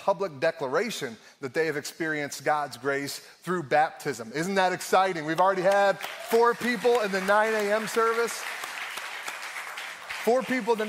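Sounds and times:
speech: 0.0s - 8.6s, 10.2s - 10.8s
audience clapping: 5.3s - 10.8s.

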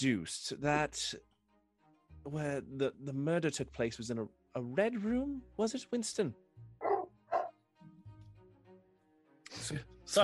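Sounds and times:
speech: 0.0s - 1.3s, 2.2s - 6.9s, 9.7s - 10.2s
dog whimpering: 6.8s - 7.5s
dog barking in a theater: 6.8s - 7.6s.

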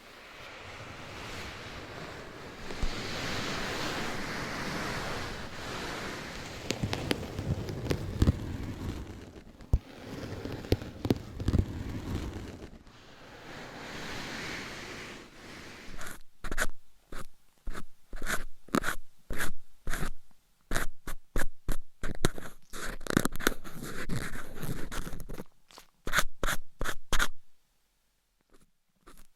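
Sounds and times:
scratching and rubbing: 0.3s - 20.1s, 22.0s - 25.5s, 28.5s - 29.3s
sharp taps and scrapes: 4.8s - 13.0s, 16.0s - 27.4s, 28.4s - 29.3s.

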